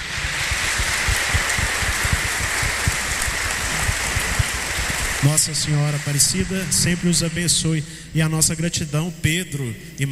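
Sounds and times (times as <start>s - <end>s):
audience applause: 0.0s - 7.9s
speech: 5.2s - 10.0s.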